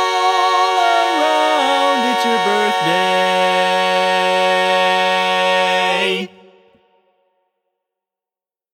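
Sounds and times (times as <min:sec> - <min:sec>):
barbershop singing in English: 0:00.0 - 0:06.5.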